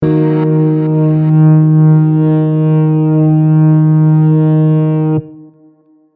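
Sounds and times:
transition note: 0:00.0 - 0:05.7.

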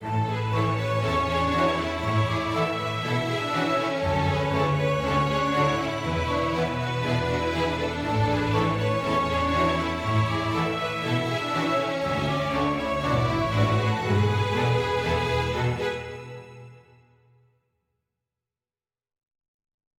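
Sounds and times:
happy forte music: 0:00.0 - 0:16.2.

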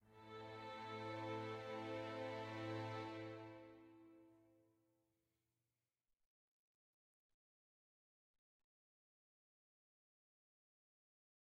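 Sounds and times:
sad soft music ending: 0:00.1 - 0:04.2.

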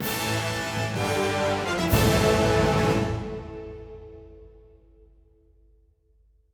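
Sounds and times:
boss theme music: 0:00.0 - 0:04.5.

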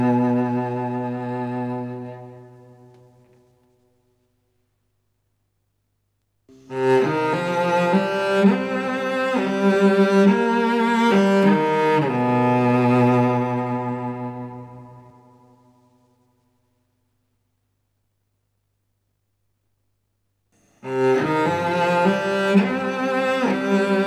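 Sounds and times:
cello playing a variation: 0:00.0 - 0:03.3, 0:06.5 - 0:15.4, 0:20.8 - 0:24.0.

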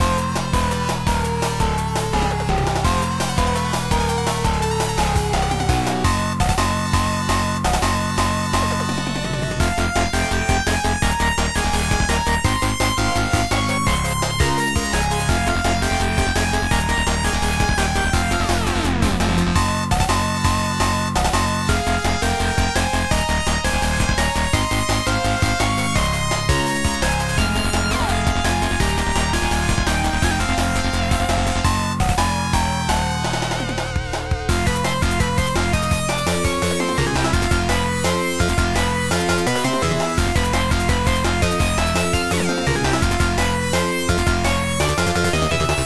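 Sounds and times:
boss battle music loop: 0:00.0 - 0:45.8.

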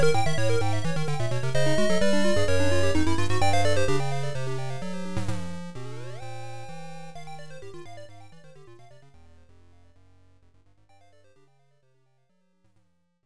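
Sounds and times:
main background music: 0:00.0 - 0:05.0.

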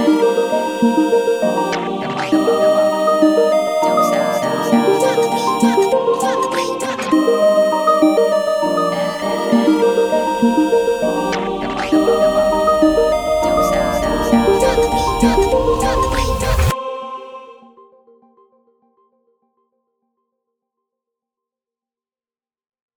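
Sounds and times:
death theme music: 0:00.0 - 0:16.7.

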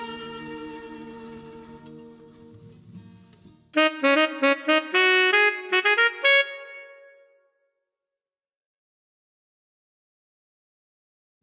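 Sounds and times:
disco synth lead: 0:03.8 - 0:06.6.

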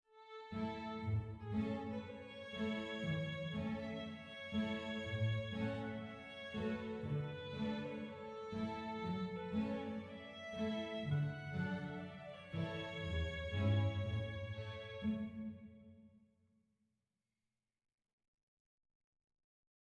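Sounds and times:
happy soft music: 0:00.5 - 0:15.8.

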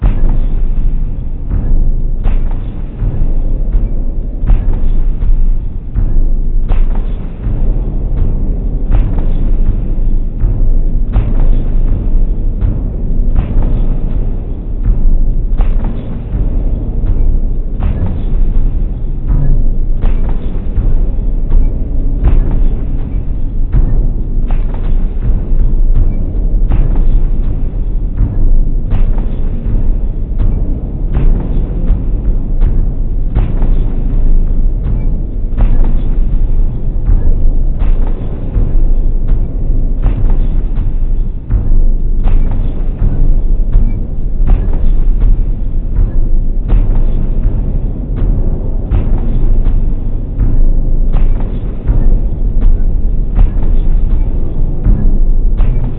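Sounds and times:
ambient music: 0:00.0 - 0:55.9.

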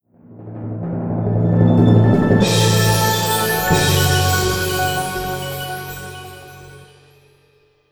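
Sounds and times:
epic orchestral music: 0:01.1 - 0:07.4.

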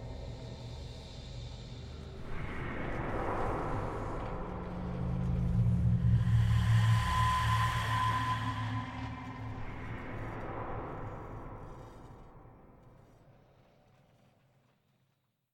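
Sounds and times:
ambient music: 0:02.9 - 0:12.4.

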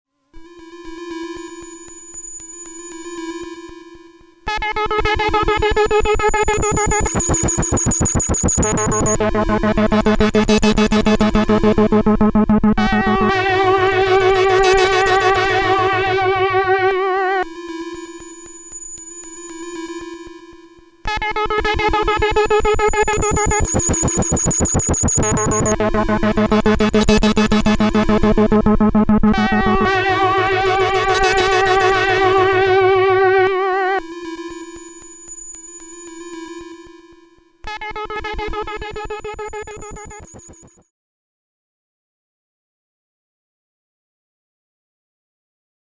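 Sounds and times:
music: 0:04.5 - 0:18.6, 0:20.4 - 0:35.2, 0:37.7 - 0:40.8.

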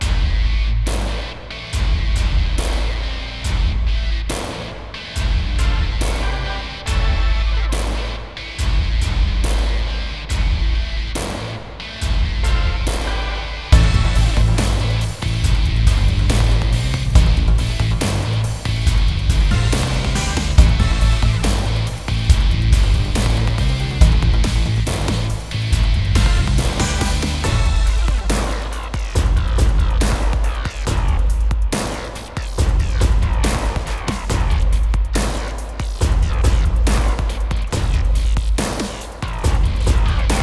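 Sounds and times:
sports music loop: 0:00.0 - 0:40.4.

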